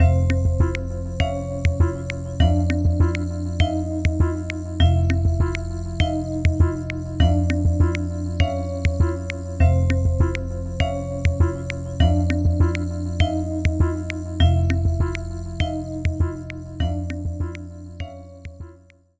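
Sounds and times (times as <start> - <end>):
music loop: 0.0 - 19.0.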